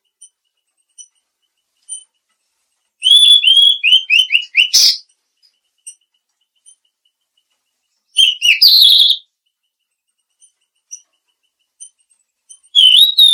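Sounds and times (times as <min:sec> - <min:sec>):
mangrove blue flycatcher whistling: 0:03.0 - 0:05.1, 0:08.2 - 0:09.2, 0:12.7 - 0:13.3.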